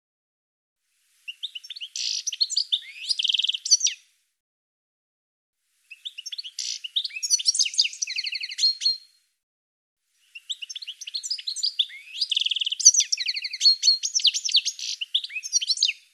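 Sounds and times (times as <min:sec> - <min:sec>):
bird twittering: 0:01.3 - 0:04.0, 0:05.9 - 0:09.1, 0:10.3 - 0:16.0.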